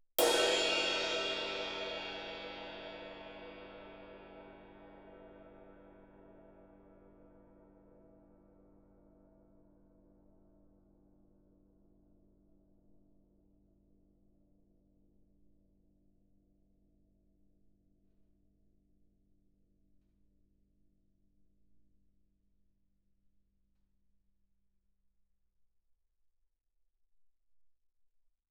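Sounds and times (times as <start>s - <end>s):
loud suspended ride cymbal struck with stick shoulder: 0.2s - 5.7s.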